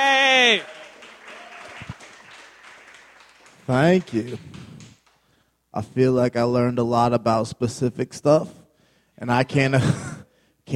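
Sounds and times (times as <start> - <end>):
speech: 0.0 - 0.7, 3.7 - 4.6, 5.8 - 8.6, 9.2 - 10.1
audience applause for a comedian at a comedy exposition: 0.0 - 5.4.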